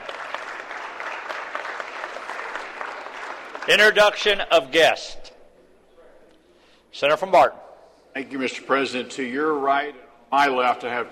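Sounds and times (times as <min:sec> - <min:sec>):
audience clapping: 0:00.0 - 0:04.6
speech: 0:03.7 - 0:05.3, 0:07.0 - 0:07.6, 0:08.2 - 0:11.1.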